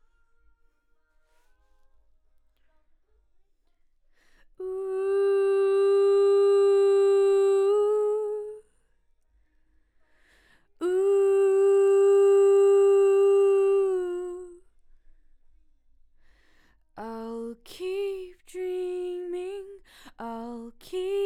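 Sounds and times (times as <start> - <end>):
background vocals: 4.6 - 8.7, 10.7 - 14.7, 17.0 - 21.2.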